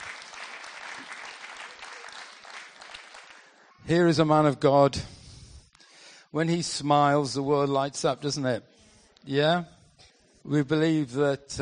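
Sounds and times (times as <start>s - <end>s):
audience applause: 0.0s - 3.7s
speech: 3.9s - 5.2s, 6.3s - 9.8s, 10.4s - 11.6s.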